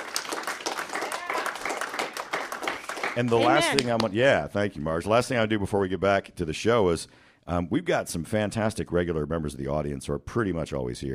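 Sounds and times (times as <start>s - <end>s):
audience applause for the crew of a live show: 0.0s - 4.1s
speech: 3.2s - 11.1s.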